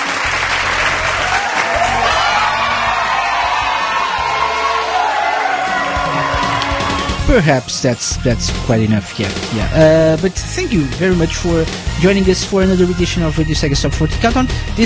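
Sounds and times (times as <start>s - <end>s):
audience applause: 0.0s - 7.3s
speech: 7.3s - 14.8s.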